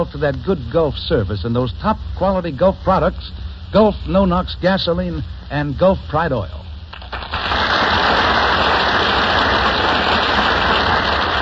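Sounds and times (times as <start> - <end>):
speech: 0.0 - 6.7
audience applause: 7.0 - 11.4.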